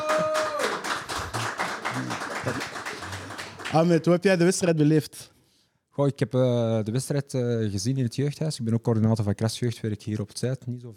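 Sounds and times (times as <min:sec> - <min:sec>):
small group applauding: 0:00.0 - 0:04.1
speech: 0:02.4 - 0:02.7, 0:03.7 - 0:05.4, 0:06.0 - 0:10.9.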